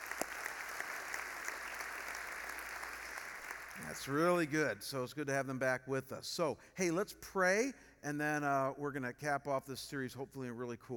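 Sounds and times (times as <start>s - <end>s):
faint audience applause: 0.0s - 4.6s
speech: 3.8s - 10.9s.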